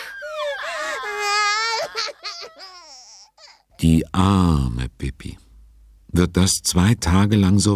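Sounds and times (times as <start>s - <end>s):
babies crying and whining: 0.0s - 3.7s
speech: 3.8s - 5.4s, 6.1s - 7.7s.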